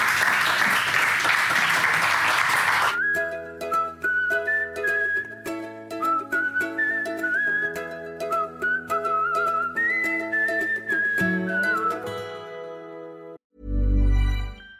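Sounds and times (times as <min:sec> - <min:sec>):
crowd applause: 0:00.0 - 0:03.0
bright tuneful melody with sustained tones: 0:03.0 - 0:14.7.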